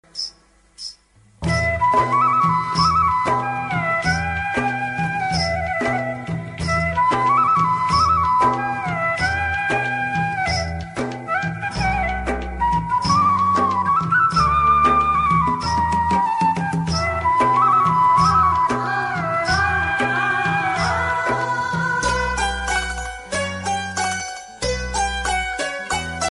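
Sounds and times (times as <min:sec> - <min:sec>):
Kannada flute love background music ringtone: 0:00.1 - 0:26.2.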